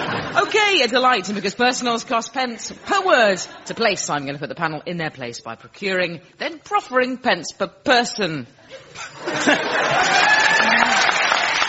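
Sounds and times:
speech: 0.4s - 11.2s
laughter: 8.6s - 11.4s
studio audience applause: 9.4s - 11.6s.

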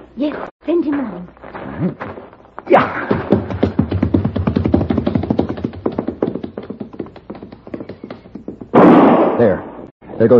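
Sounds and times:
speech: 0.2s - 3.4s, 9.4s - 10.3s
horses stampeding: 2.8s - 9.0s.

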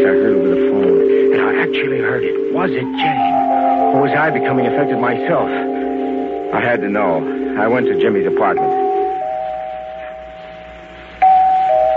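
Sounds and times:
doorbell ringing: 0.0s - 11.9s
speech: 1.8s - 3.3s, 4.0s - 5.8s, 6.5s - 8.8s.

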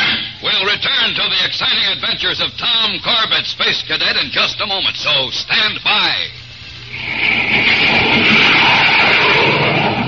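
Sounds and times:
jet plane roaring: 0.0s - 1.2s, 6.7s - 10.0s
speech: 0.7s - 6.4s.

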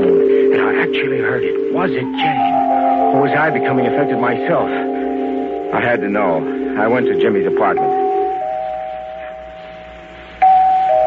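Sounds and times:
doorbell ringing: 0.0s - 11.0s
speech: 0.8s - 4.9s, 5.7s - 8.0s.

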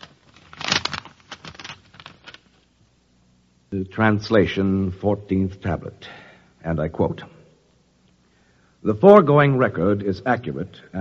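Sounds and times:
paper envelope crinkling and tearing open: 0.0s - 2.6s
speech: 3.7s - 7.4s, 8.8s - 11.0s.

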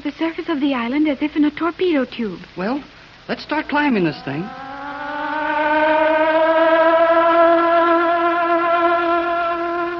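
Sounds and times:
speech: 0.0s - 4.6s
submarine submerge alarm signal: 3.8s - 9.9s.

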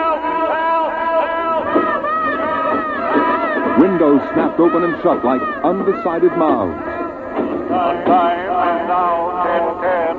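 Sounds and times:
dense crowd of voices screaming and wailing: 0.0s - 7.3s
speech: 4.0s - 6.9s, 7.7s - 10.0s.

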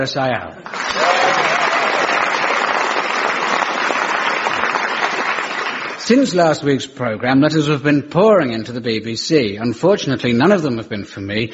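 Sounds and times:
speech: 0.0s - 1.5s, 6.1s - 11.5s
studio audience applause: 0.6s - 6.2s.

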